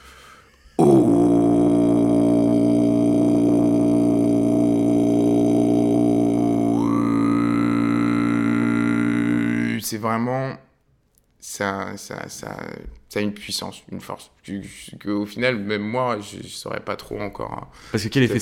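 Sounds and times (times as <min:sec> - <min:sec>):
low vibrating Om-like vocal chant: 0:00.8 - 0:09.8
speech: 0:10.0 - 0:10.6, 0:11.6 - 0:18.4.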